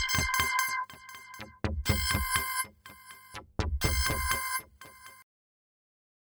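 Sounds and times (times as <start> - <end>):
Kaossilator synthesizer: 0.0 - 4.8.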